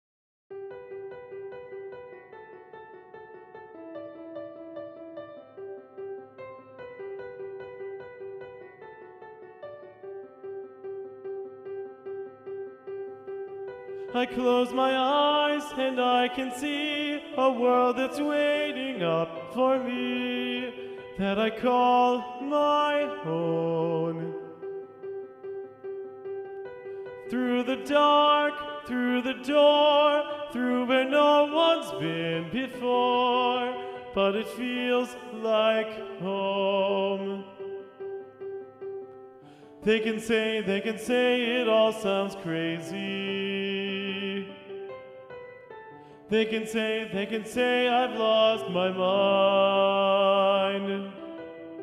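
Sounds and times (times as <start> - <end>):
tenor singing: 14.0 - 24.8, 27.2 - 37.9, 39.8 - 44.9, 46.3 - 51.8.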